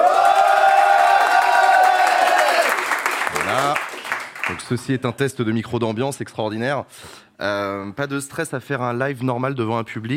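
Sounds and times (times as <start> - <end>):
live studio audience cheering: 0.0 - 3.8
speech: 4.6 - 10.1.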